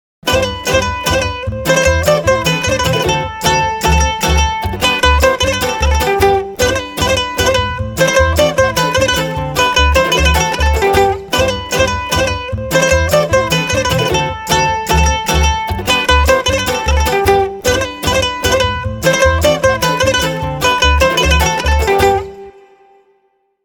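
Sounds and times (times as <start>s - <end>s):
instrumental music: 0.2s - 23.6s.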